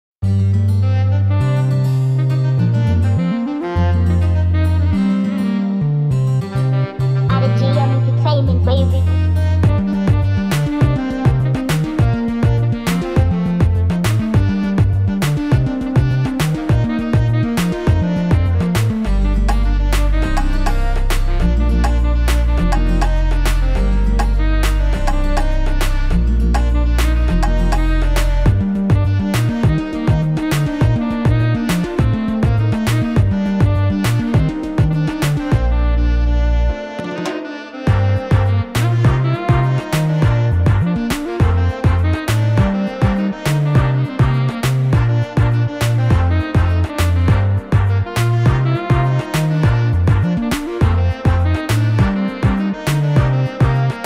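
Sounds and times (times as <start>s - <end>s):
saxophone: 0.2s - 54.0s.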